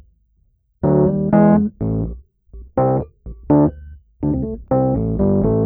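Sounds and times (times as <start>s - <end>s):
electric piano: 0.9s - 2.1s, 2.8s - 5.6s.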